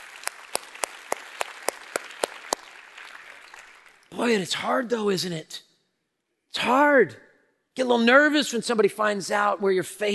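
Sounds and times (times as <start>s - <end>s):
audience applause: 0.0s - 4.1s
sharp rhythmic claps: 0.0s - 4.2s
speech: 4.1s - 5.7s, 6.6s - 7.2s, 7.8s - 10.1s.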